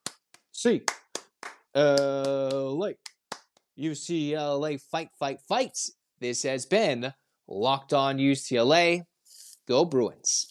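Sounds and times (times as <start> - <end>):
rhythmic eight-count clapping: 0.0 - 3.7
speech: 0.6 - 1.0, 1.8 - 3.1, 3.8 - 9.1, 9.7 - 10.4.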